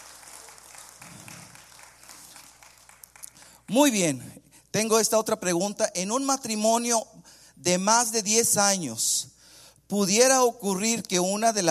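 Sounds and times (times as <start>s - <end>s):
audience applauding: 0.0s - 3.6s
speech: 3.7s - 11.7s.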